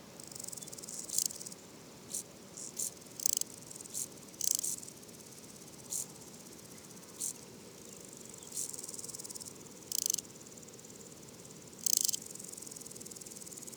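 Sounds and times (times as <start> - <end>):
woodland grasshopper stridulating: 0.2 - 1.6, 2.1 - 13.7
insect clicks: 3.2 - 3.5, 4.4 - 4.7, 9.9 - 10.2, 11.8 - 12.2.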